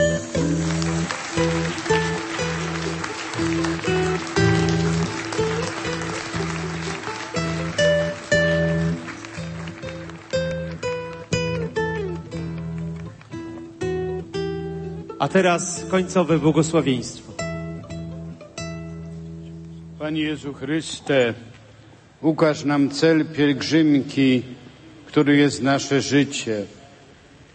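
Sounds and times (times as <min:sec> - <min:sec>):
applause: 0:00.0 - 0:13.4
speech: 0:15.2 - 0:17.3, 0:20.1 - 0:21.6, 0:22.2 - 0:26.8.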